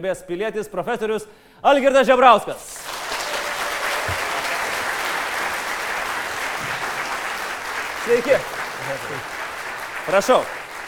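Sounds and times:
speech: 0.0s - 2.9s, 8.1s - 9.4s, 10.1s - 10.6s
audience applause welcoming a guest onto a stage: 2.7s - 10.8s.

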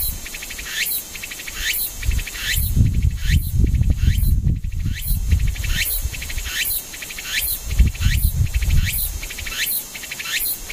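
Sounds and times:
cicada calling with shrill rising buzzes: 0.0s - 10.7s
constant high hiss: 0.0s - 10.7s.

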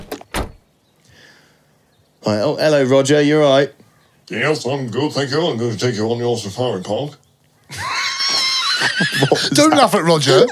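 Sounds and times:
safari truck door shutting: 0.0s - 0.6s
faint hum inside the truck: 0.0s - 10.5s
quiet rustle inside the truck: 0.0s - 10.5s
speech: 2.3s - 7.9s, 9.0s - 10.5s
laughter: 7.7s - 10.5s.

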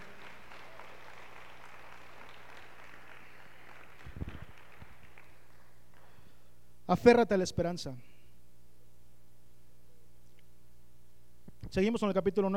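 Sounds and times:
audience applause: 0.0s - 6.1s
speech: 6.9s - 8.1s, 11.8s - 12.5s.

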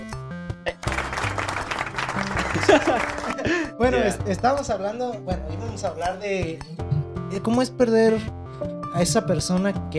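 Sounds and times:
applause: 0.8s - 3.6s
laughter: 2.2s - 3.9s
speech: 2.7s - 9.9s.

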